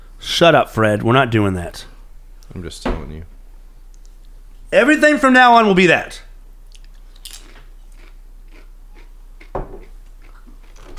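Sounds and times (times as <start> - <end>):
speech: 0.3 - 1.9, 2.5 - 3.3, 4.7 - 6.2
crunching on a spicy snack: 6.7 - 10.9.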